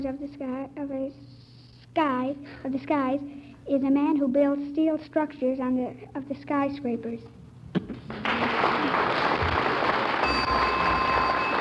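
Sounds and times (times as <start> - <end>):
speech: 0.0 - 1.4, 2.0 - 9.3
audience applause: 8.1 - 11.6
quiz show bell multi-tone chime: 10.2 - 11.6.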